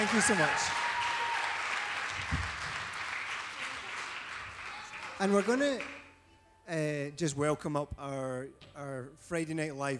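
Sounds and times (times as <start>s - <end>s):
speech: 0.0s - 0.9s, 5.2s - 6.0s, 6.7s - 9.9s
audience applause for a performer during an opening worship service: 0.0s - 6.2s.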